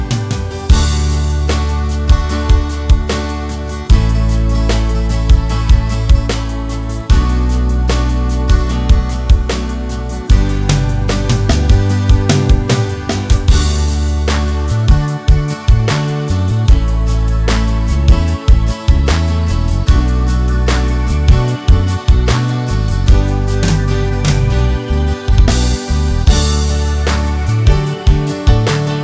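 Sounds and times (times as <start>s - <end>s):
piano ballad: 0.0s - 29.0s.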